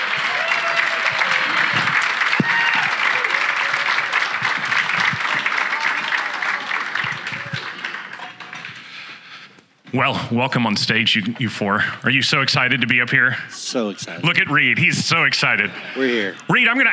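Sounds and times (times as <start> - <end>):
audience cheering and clapping in a standing ovation: 0.0 - 9.2
speech: 10.0 - 16.9.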